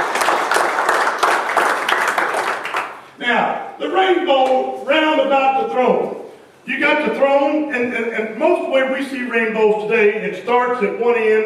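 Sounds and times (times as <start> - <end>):
audience applause: 0.0 - 3.0
speech: 3.2 - 11.4.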